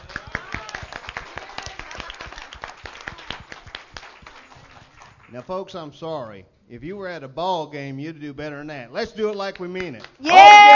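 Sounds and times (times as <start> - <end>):
audience applause: 0.0 - 5.3
speech: 5.3 - 10.7.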